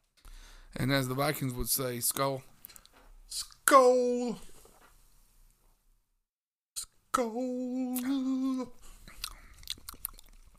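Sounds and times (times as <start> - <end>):
speech: 0.8 - 2.5, 3.3 - 4.5, 7.2 - 8.8
person gulping down a glass of rosé: 9.1 - 10.5.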